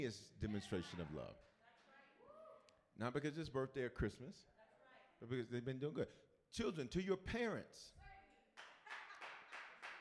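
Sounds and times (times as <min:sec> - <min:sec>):
speech: 0:00.0 - 0:01.6, 0:03.0 - 0:04.5, 0:05.2 - 0:08.0
single hand clap: 0:08.6 - 0:10.0.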